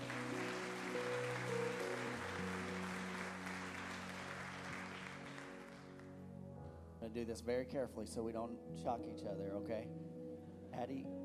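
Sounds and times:
audience applause: 0.0 - 6.1
speech: 7.0 - 11.2.

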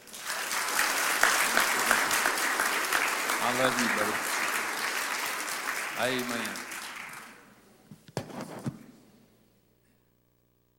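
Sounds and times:
audience applause: 0.0 - 7.5
speech: 3.5 - 4.4, 6.0 - 6.7.

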